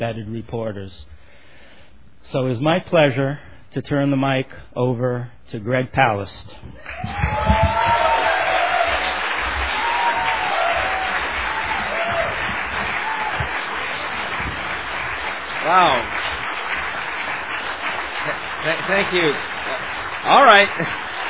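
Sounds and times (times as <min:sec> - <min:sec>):
speech: 0:00.0 - 0:01.3, 0:02.2 - 0:08.0, 0:15.7 - 0:16.3, 0:18.3 - 0:19.6, 0:20.2 - 0:21.0
scattered cheers and whoops: 0:06.8 - 0:14.7
crowd applause: 0:06.8 - 0:21.2.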